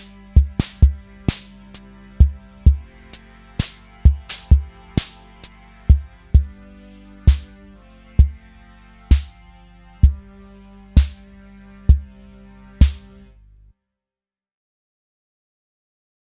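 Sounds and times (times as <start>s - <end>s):
mini drum pattern: 0.0s - 1.5s, 2.2s - 2.8s, 3.6s - 5.2s, 5.9s - 6.5s, 7.3s - 7.5s, 9.1s - 9.4s, 11.0s - 11.2s, 12.8s - 13.0s.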